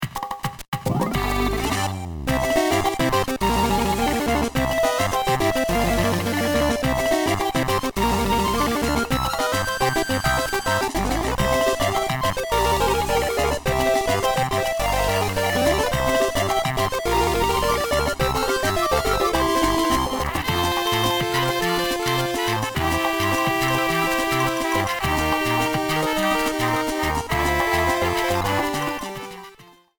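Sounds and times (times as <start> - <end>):
mini-game theme music: 0.9 - 29.9.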